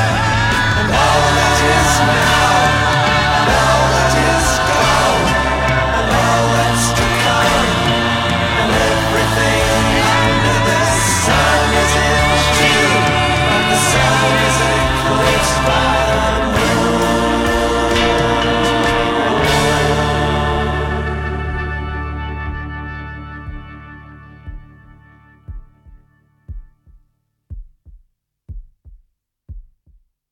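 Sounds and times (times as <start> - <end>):
baritone choir part singing: 0.0 - 22.3.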